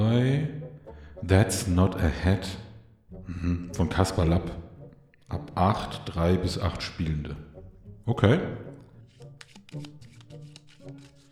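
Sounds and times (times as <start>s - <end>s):
speech: 0.1s - 2.6s, 3.3s - 4.6s, 5.3s - 8.7s, 9.7s - 9.9s
playing cards shuffled for the party board game That's Not a Hat: 9.0s - 11.3s.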